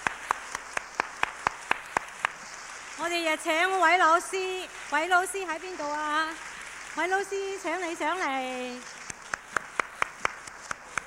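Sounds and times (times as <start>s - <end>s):
audience clapping at a ceremony: 0.0s - 3.0s, 8.7s - 11.0s
speech: 3.0s - 9.0s.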